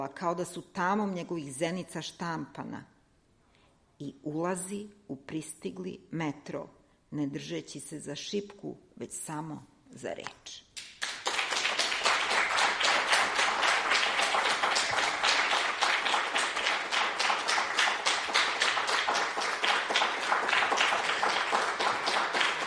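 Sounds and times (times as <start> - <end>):
speech: 0.0 - 2.9, 4.0 - 10.6
audience applause after a poetry reading at the Kolarac Endowment hall: 11.0 - 22.6.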